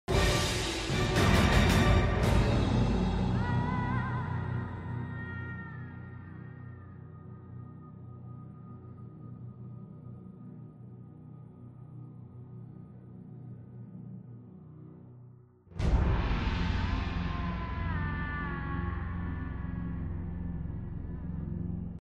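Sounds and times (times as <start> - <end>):
theme song: 0.1 - 7.7, 15.8 - 22.0.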